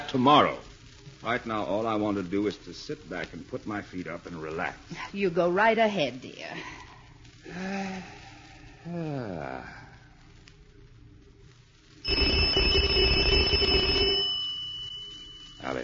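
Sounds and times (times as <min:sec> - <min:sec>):
speech: 0:00.1 - 0:06.9, 0:07.5 - 0:08.2, 0:08.8 - 0:09.8, 0:12.0 - 0:12.7, 0:15.6 - 0:15.8
electric doorbell buzzing: 0:12.1 - 0:15.8.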